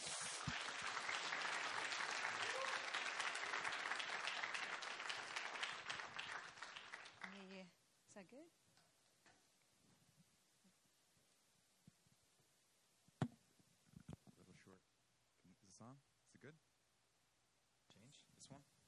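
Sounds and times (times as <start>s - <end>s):
church congregation applauding to welcome a speaker: 0.0s - 7.7s.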